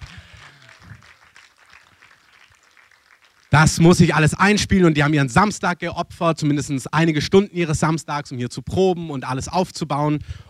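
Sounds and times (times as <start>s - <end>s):
low voice murmur: 0.0s - 1.2s
audience applauding: 0.0s - 4.1s
speech: 3.5s - 10.4s.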